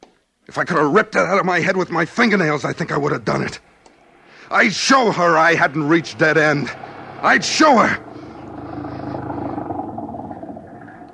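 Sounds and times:
speech: 0:00.5 - 0:03.7, 0:04.5 - 0:08.1
old cheap flivver car engine chugging: 0:04.1 - 0:11.1.

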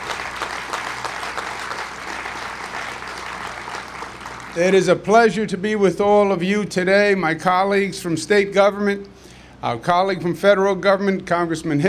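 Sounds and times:
audience applause: 0:00.0 - 0:04.8
speech: 0:04.6 - 0:11.8.

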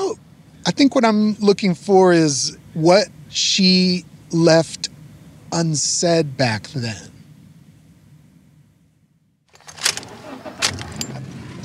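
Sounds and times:
car driving and parking in a house driveway: 0:00.0 - 0:11.6
speech: 0:00.7 - 0:04.9, 0:05.5 - 0:07.1
sharp rattling clicks: 0:09.5 - 0:11.6.

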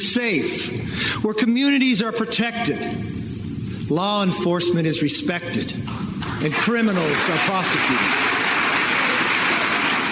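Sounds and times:
speech: 0:00.1 - 0:03.2, 0:03.9 - 0:08.3
crowd cheering: 0:06.2 - 0:10.0.

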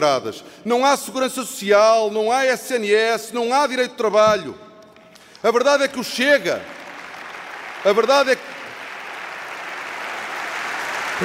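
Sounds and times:
speech: 0:00.0 - 0:04.7, 0:05.4 - 0:06.8, 0:07.8 - 0:08.5
crowd applause interrupting a speech: 0:06.3 - 0:11.2.

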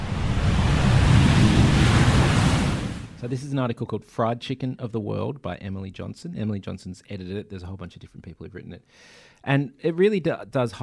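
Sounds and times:
airplane sound effect: 0:00.0 - 0:03.2
speech: 0:03.3 - 0:10.8.

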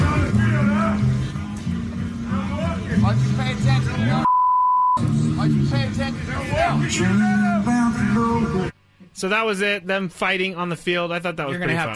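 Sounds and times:
people talking heatedly: 0:00.0 - 0:04.3, 0:05.0 - 0:11.9
high-pitched censor bleep over bad language: 0:04.2 - 0:05.0
speech: 0:06.8 - 0:07.7, 0:09.2 - 0:11.9.

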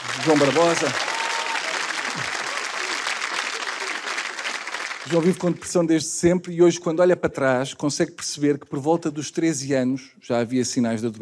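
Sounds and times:
audience applause: 0:00.0 - 0:05.7
speech: 0:00.2 - 0:01.1, 0:05.1 - 0:11.1.

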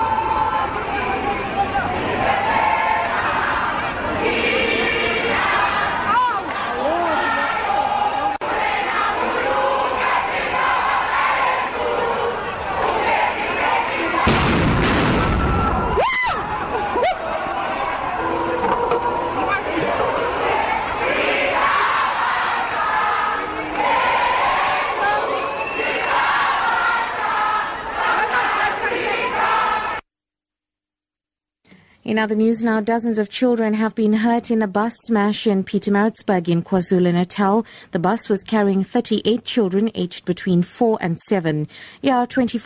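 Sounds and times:
large crowd of protesting students chanting and shouting: 0:00.0 - 0:30.0
speech: 0:32.2 - 0:42.6.

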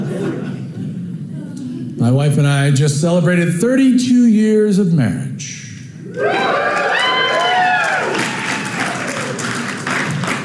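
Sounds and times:
laughter: 0:00.0 - 0:01.9
speech: 0:02.0 - 0:05.6, 0:06.2 - 0:06.8
audience applause: 0:06.3 - 0:10.4.

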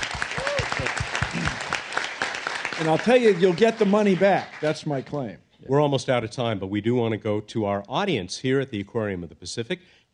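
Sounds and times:
audience applause: 0:00.0 - 0:05.1
speech: 0:02.8 - 0:10.1.

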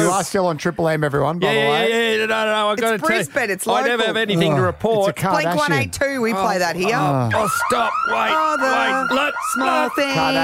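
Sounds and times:
speech: 0:00.2 - 0:10.4
alarm siren sound effect: 0:06.8 - 0:10.4.

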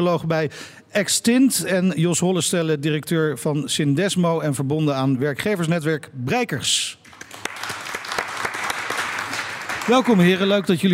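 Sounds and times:
speech: 0:00.0 - 0:07.2, 0:09.9 - 0:10.9
applause welcoming two jury members at an event: 0:07.1 - 0:10.7.

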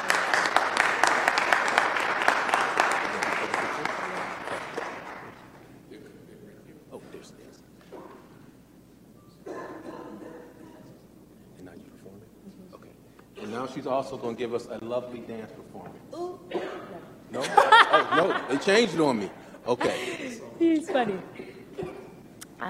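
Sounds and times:
crowd clapping: 0:00.0 - 0:05.7
speech: 0:13.7 - 0:16.2, 0:18.2 - 0:21.4
laughter: 0:17.3 - 0:21.9.

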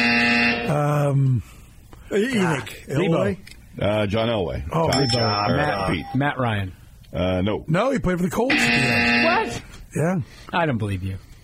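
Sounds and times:
harsh quiz game-show buzzer: 0:00.0 - 0:00.9, 0:08.5 - 0:09.6
speech: 0:00.7 - 0:11.3.

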